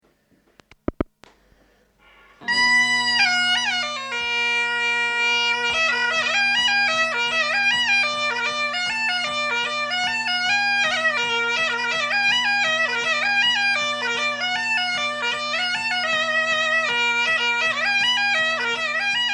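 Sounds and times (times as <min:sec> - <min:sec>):
mazurka: 0:02.0 - 0:19.3.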